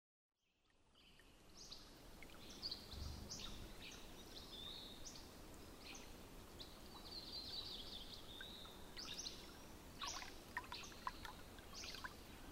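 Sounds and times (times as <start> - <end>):
robin singing whistled phrases: 1.0 - 12.4.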